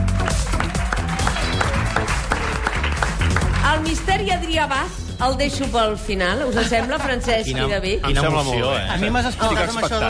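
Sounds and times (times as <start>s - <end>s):
audience applause: 0.0s - 4.0s
speech: 3.8s - 10.0s.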